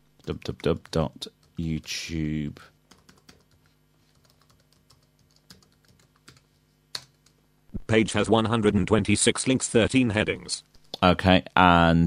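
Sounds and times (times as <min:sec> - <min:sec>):
speech: 0:00.2 - 0:02.7, 0:07.9 - 0:12.0
typing on a computer keyboard to enter a web address: 0:02.9 - 0:07.4.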